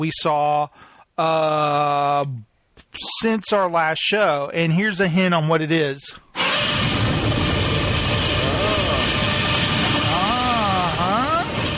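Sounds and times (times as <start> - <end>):
speech: 0.0 - 6.2
giant movie monster's long roar: 6.5 - 11.6.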